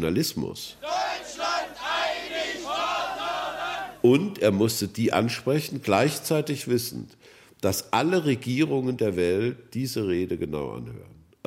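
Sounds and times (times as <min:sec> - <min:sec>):
speech: 0:00.0 - 0:01.3, 0:04.0 - 0:11.4
huge crowd cheering and roaring at a rally: 0:00.8 - 0:04.0.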